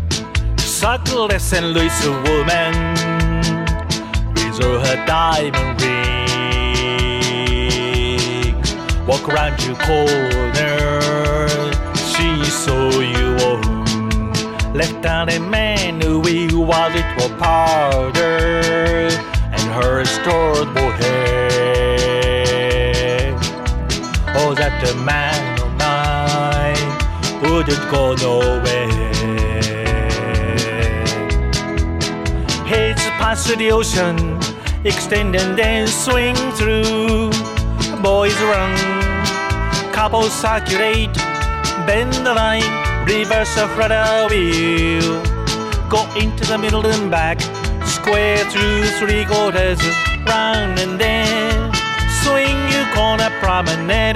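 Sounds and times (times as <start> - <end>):
person singing blues: 0.1 - 54.1.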